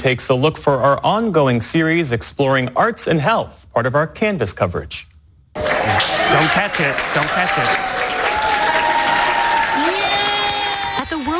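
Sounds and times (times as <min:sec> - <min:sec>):
speech: 0:00.0 - 0:08.1
roomful of people cheering and clapping: 0:05.6 - 0:11.3.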